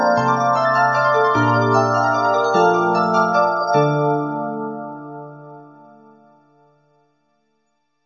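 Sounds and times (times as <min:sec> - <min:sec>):
carol bells ringing: 0:00.0 - 0:05.9.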